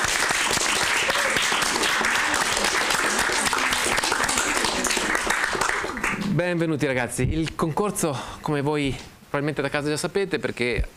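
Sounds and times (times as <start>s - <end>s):
class of students applauding: 0.0s - 6.4s
speech: 6.4s - 10.9s.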